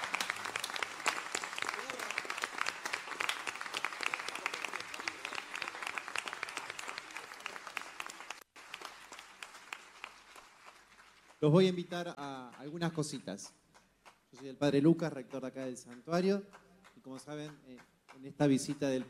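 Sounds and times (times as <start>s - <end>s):
audience applause: 0.0s - 11.4s
speech: 11.4s - 13.6s, 14.3s - 19.0s.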